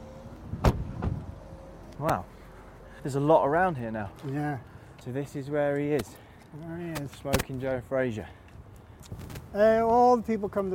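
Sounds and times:
car door being opened: 0.0 - 1.6
speech: 2.0 - 2.4, 3.0 - 8.4, 9.0 - 10.7.

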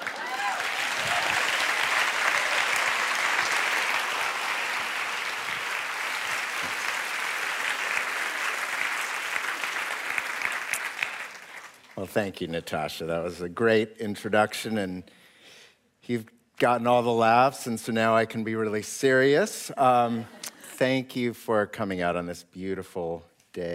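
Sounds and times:
audience applause greeting an invited author: 0.0 - 12.0
speech: 12.0 - 15.2, 16.0 - 23.7.

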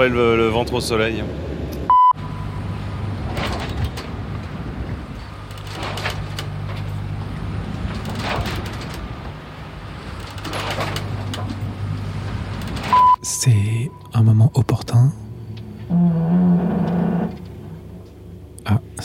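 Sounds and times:
speech: 0.0 - 1.6, 13.4 - 15.2, 18.7 - 19.0
sailboat mast creaking: 3.0 - 13.0, 15.6 - 18.2.

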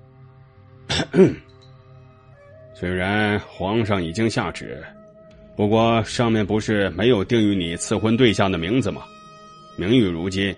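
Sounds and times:
throat clearing: 0.9 - 1.5
speech: 1.1 - 1.4, 2.8 - 5.0, 5.6 - 9.2, 9.8 - 10.5.

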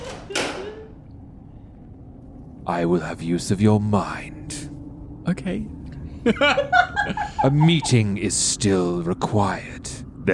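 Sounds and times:
door shutting: 0.0 - 1.0
low hum: 0.0 - 10.3
speech: 2.7 - 4.6, 5.3 - 10.3
laughter: 6.2 - 8.2.

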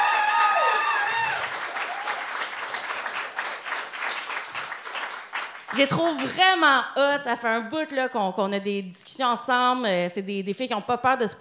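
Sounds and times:
cheers and whoops: 0.0 - 2.5
audience applause: 0.0 - 6.4
speech: 5.7 - 11.3.

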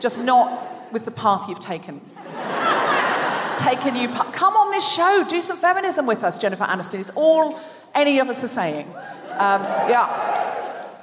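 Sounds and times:
speech: 0.0 - 2.4, 3.6 - 10.3
laughter: 2.2 - 3.9
audience cheering and whooping: 9.0 - 11.0.

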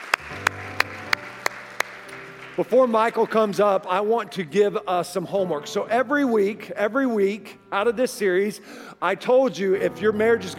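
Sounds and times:
hand claps: 0.0 - 4.5
speech: 2.6 - 10.5.

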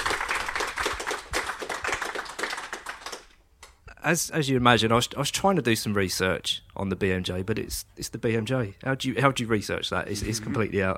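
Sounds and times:
audience applause: 0.0 - 3.4
speech: 4.0 - 10.9.

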